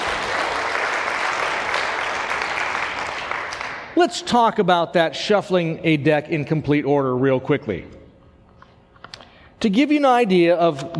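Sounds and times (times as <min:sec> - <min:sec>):
crowd clapping steadily and loudly: 0:00.0 - 0:03.9
speech: 0:04.0 - 0:08.0, 0:09.6 - 0:10.9.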